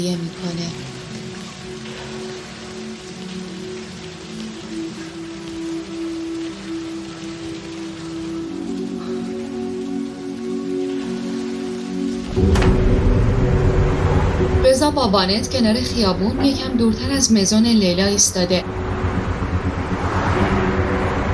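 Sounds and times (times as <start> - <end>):
speech: 0.0 - 1.0, 14.9 - 18.9
steady rain falling: 0.0 - 21.3
low tonal hum: 12.2 - 21.3.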